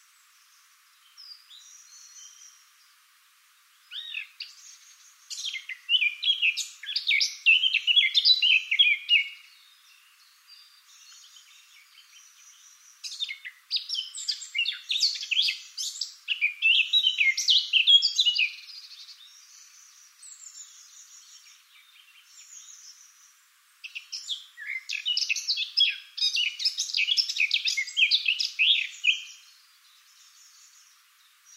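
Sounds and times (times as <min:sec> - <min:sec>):
Eurasian blackcap song of fluty warbling phrases: 0:00.0 - 0:31.5.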